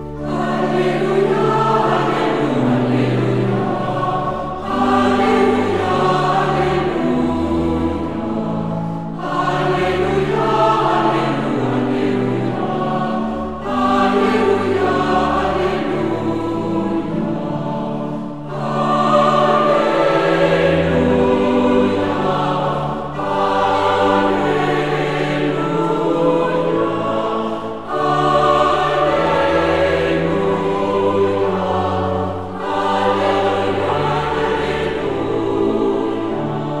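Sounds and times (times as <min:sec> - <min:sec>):
vocal ensemble singing an alleluia: 0:00.1 - 0:36.7.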